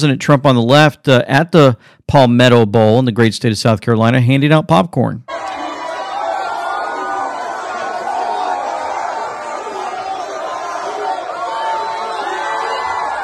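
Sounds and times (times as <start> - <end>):
speech: 0.0 - 5.3
stadium crowd screaming and cheering: 5.3 - 13.2.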